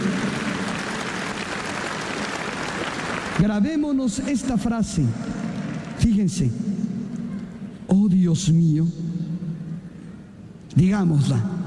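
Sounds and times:
crowd clapping: 0.0 - 6.2
speech: 3.4 - 5.4, 6.0 - 6.7, 7.9 - 9.1, 10.8 - 11.6.

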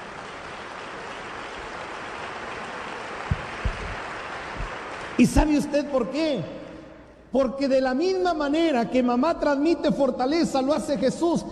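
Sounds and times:
audience applauding: 0.0 - 5.5
speech: 5.2 - 6.6, 7.3 - 11.5.

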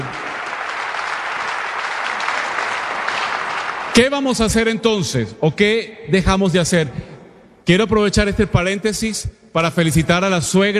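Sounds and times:
audience applause: 0.0 - 4.4
speech: 4.0 - 7.1, 7.7 - 10.7.

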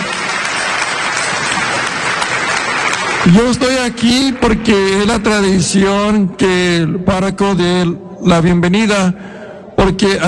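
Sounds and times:
audience applause: 0.0 - 5.8
speech: 3.2 - 10.2.

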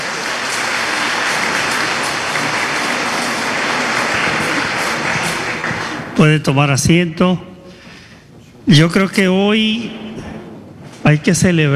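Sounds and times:
audience applauding: 0.0 - 6.4
speech: 6.2 - 7.5, 8.7 - 10.1, 11.0 - 11.7.

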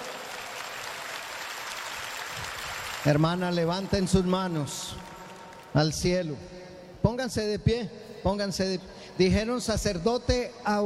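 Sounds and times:
audience applauding: 0.0 - 5.8
speech: 3.0 - 5.1, 5.7 - 10.8.

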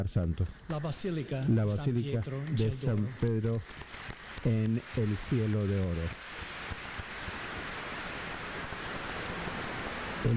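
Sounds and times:
speech: 0.0 - 6.4
crowd applauding the Pope in a basilica: 2.4 - 9.4.

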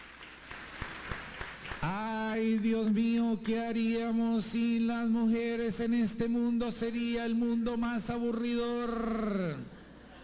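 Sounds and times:
church congregation applauding softly: 0.0 - 2.8
speech: 1.8 - 9.8.

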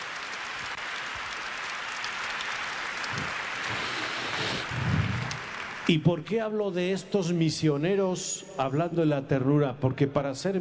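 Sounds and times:
crowd applauding: 0.0 - 6.1
speech: 5.9 - 10.5.

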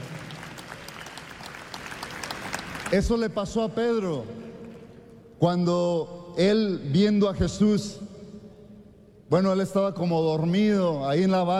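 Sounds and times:
church congregation applauding Jesus Christ: 0.0 - 5.0
speech: 2.9 - 4.4, 5.4 - 8.1, 9.3 - 11.5.

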